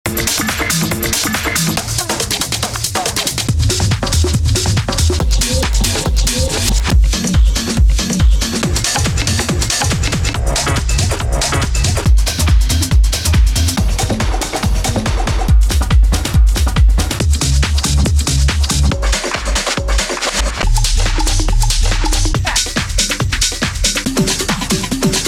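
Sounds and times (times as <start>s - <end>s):
hardgroove techno loops: 0.1s - 25.2s.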